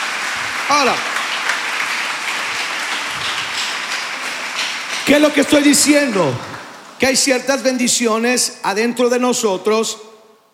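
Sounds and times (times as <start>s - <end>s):
audience applause at a Christian worship gathering: 0.0s - 7.0s
speech: 0.7s - 1.1s, 5.1s - 10.1s.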